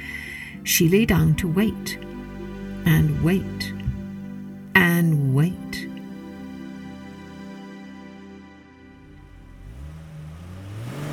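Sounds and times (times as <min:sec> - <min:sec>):
car engine humming: 0:00.0 - 0:08.0, 0:08.7 - 0:11.1
speech: 0:00.7 - 0:02.1, 0:02.9 - 0:03.7, 0:05.0 - 0:05.7
tires crunching on gravel: 0:09.0 - 0:11.1.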